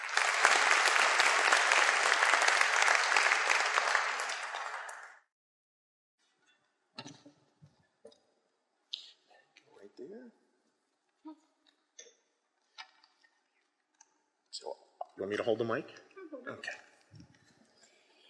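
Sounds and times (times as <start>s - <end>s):
crowd applauding: 0.0s - 5.3s
speech: 15.2s - 16.8s.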